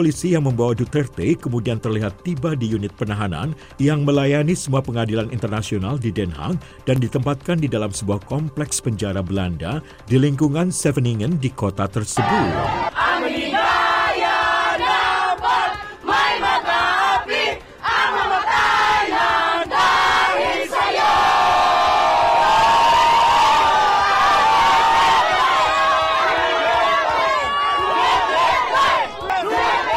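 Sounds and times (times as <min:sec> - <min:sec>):
speech: 0:00.0 - 0:13.0
crowd chanting outside detention facility: 0:12.2 - 0:22.6, 0:23.5 - 0:29.9
cheering and yelling: 0:12.2 - 0:29.9.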